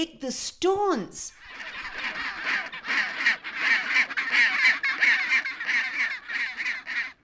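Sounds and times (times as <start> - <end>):
speech: 0.0 - 2.2
penguin colony harsh screeches: 1.5 - 7.2.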